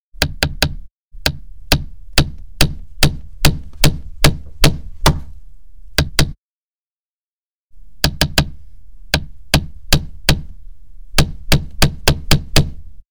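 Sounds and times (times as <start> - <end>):
hammer: 0.2 - 5.3, 9.2 - 10.5, 11.2 - 12.8.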